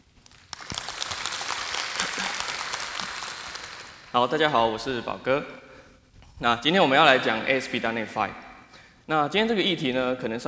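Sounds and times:
audience applause welcoming speaker: 0:00.2 - 0:04.9
speech: 0:04.1 - 0:05.6, 0:06.4 - 0:08.4, 0:09.1 - 0:10.4.

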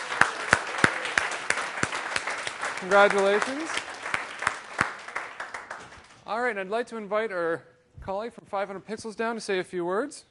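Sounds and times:
audience applause thanking event staff: 0:00.0 - 0:06.2
speech: 0:02.8 - 0:03.9, 0:06.3 - 0:10.2.

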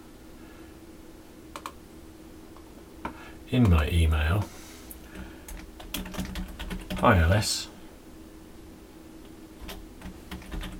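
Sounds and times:
typing on a computer keyboard: 0:01.6 - 0:01.8, 0:05.1 - 0:07.1, 0:09.6 - 0:10.7
speech: 0:03.5 - 0:04.6, 0:07.0 - 0:07.7.

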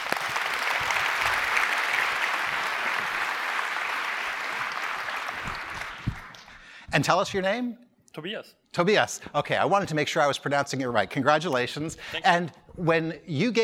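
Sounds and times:
audience applause for a contest winner: 0:00.0 - 0:06.6
speech: 0:07.0 - 0:13.6.

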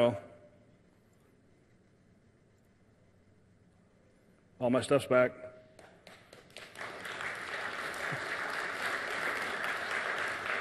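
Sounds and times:
speech: 0:00.0 - 0:00.3, 0:04.6 - 0:05.5
audience applause: 0:06.1 - 0:10.5.

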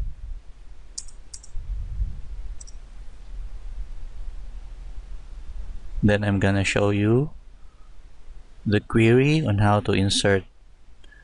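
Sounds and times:
low steady rumble: 0:00.0 - 0:11.2
computer mouse clicks: 0:01.0 - 0:01.6
speech: 0:06.0 - 0:07.4, 0:08.6 - 0:10.5.

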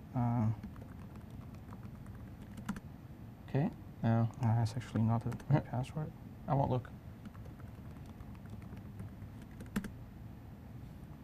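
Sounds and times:
steady low hum: 0:00.0 - 0:11.2
speech: 0:00.2 - 0:00.7, 0:03.5 - 0:07.0
password typed on a computer keyboard: 0:00.6 - 0:02.8, 0:04.9 - 0:05.6, 0:07.2 - 0:09.9.

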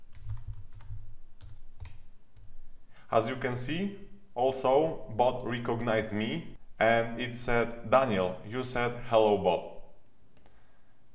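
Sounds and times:
typing a message on a computer keyboard: 0:00.0 - 0:02.6
speech: 0:03.1 - 0:09.7.

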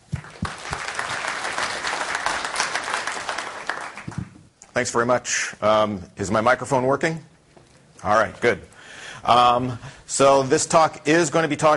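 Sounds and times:
audience applause: 0:00.0 - 0:04.4
speech: 0:04.8 - 0:07.3, 0:08.0 - 0:11.7.

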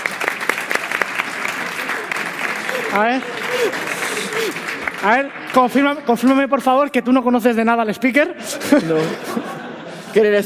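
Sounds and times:
audience applauding a volunteer called up on stage: 0:00.0 - 0:06.0
laughter: 0:01.1 - 0:05.5, 0:08.2 - 0:10.4
speech: 0:02.9 - 0:09.5, 0:10.1 - 0:10.4.

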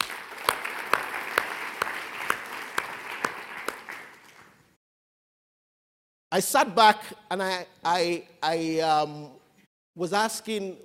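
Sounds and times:
audience applause: 0:00.0 - 0:04.6
speech: 0:06.4 - 0:09.4, 0:10.0 - 0:10.8.

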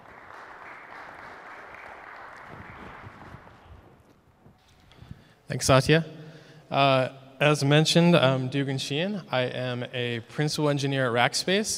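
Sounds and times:
audience applause: 0:00.0 - 0:03.8
speech: 0:05.5 - 0:11.7.

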